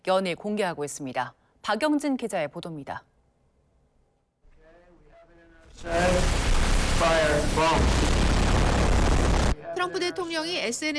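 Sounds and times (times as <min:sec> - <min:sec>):
speech: 0:00.0 - 0:03.1, 0:05.8 - 0:06.4, 0:07.0 - 0:08.1, 0:09.8 - 0:10.9
military aircraft bearing an Iranian flag exploding in an AI-made video: 0:05.8 - 0:09.6.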